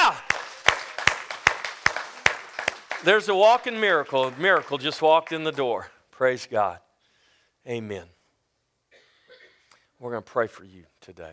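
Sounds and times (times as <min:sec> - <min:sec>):
audience applause: 0:00.0 - 0:05.7
speech: 0:03.0 - 0:06.8, 0:07.6 - 0:08.2, 0:10.0 - 0:11.3.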